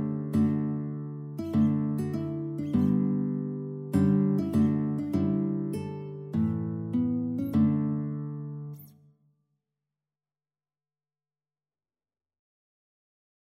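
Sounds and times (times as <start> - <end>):
guitar: 0.0 - 9.2.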